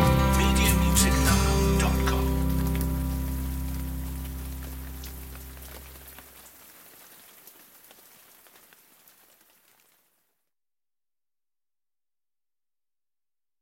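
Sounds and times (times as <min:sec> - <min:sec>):
underscore music: 0:00.0 - 0:05.3.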